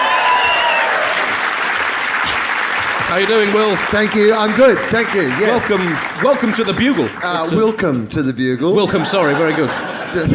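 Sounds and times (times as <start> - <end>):
audience applause welcoming a comedian onto a show: 0.0 - 7.8
speech: 3.1 - 10.3
laughter: 8.6 - 10.3.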